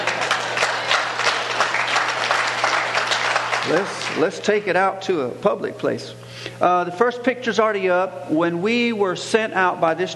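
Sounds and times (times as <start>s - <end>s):
audience clapping: 0.0s - 4.6s
speech: 3.7s - 10.1s.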